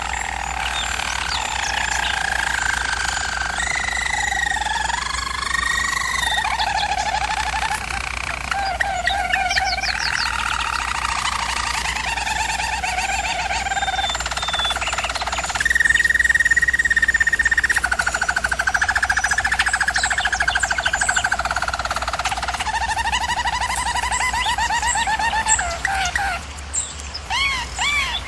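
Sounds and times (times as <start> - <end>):
German Roller canary rolling song: 0.0 - 28.2.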